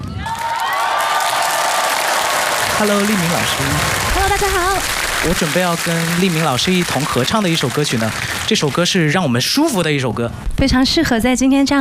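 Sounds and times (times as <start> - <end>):
crowd cheering and whooping to welcome a singer onto a concert stage: 0.0 - 9.0
speech: 2.8 - 11.7.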